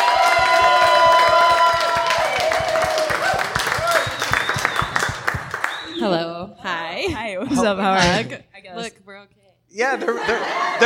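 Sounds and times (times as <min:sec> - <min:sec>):
audience applause: 0:00.0 - 0:06.0
speech: 0:07.0 - 0:10.8
laughter: 0:09.9 - 0:10.8.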